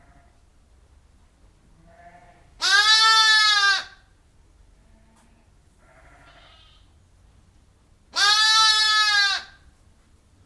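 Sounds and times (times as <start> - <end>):
sheep bleating inside a barn: 1.8 - 4.0, 4.9 - 6.9, 8.2 - 9.6.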